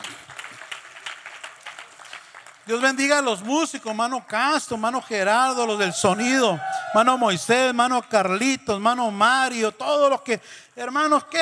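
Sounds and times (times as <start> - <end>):
audience applause: 0.0 - 3.6
speech: 2.7 - 11.4.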